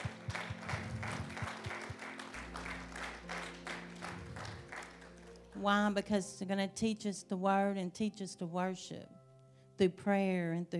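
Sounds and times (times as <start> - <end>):
audience applauding: 0.0 - 5.5
speech: 5.6 - 9.2, 9.8 - 10.7.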